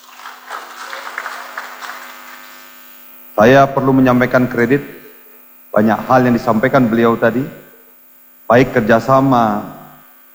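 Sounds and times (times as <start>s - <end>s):
audience applause after a speech at a university alumni gathering: 0.0s - 2.7s
low electrical hum: 0.0s - 10.3s
speech: 3.4s - 5.0s, 5.8s - 7.6s, 8.5s - 9.8s.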